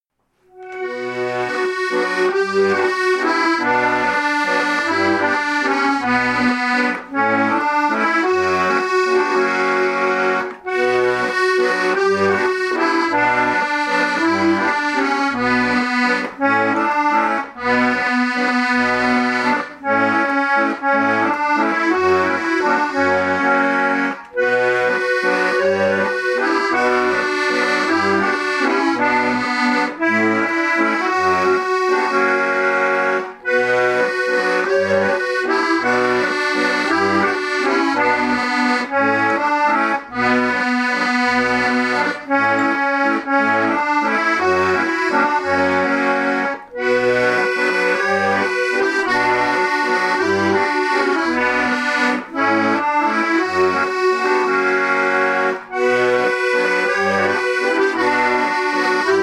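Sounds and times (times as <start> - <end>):
musette music: 0.1 - 59.2.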